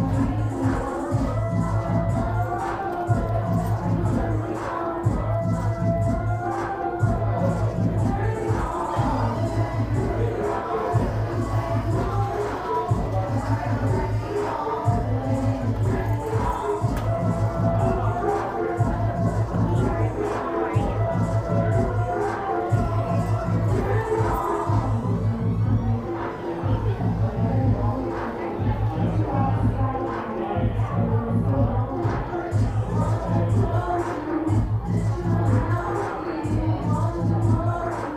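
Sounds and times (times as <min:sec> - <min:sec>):
strip club ambience: 0:00.0 - 0:38.1.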